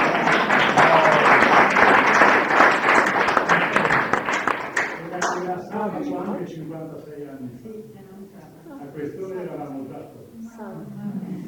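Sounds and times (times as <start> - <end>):
applause: 0.0 - 5.5.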